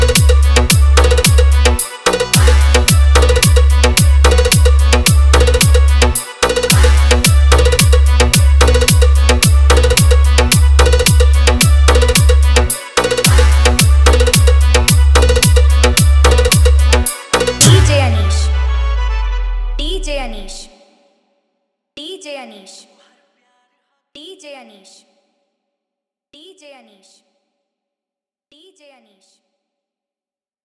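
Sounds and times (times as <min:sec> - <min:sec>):
Bhojpuri DJ remix EDM trance mix: 0:00.0 - 0:19.0.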